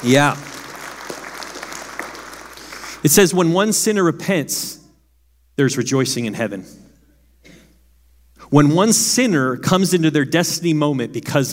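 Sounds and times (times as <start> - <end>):
speech: 0.0 - 0.4, 3.0 - 4.8, 5.6 - 6.8, 8.5 - 11.5
audience clapping: 0.0 - 3.4.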